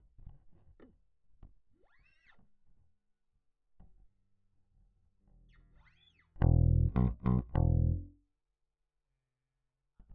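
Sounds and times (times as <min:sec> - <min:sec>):
bass: 0:06.4 - 0:08.2.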